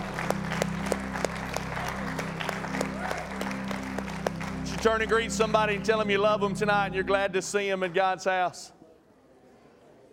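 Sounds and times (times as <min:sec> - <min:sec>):
audience hand clapping: 0:00.0 - 0:08.4
speech: 0:04.8 - 0:08.8.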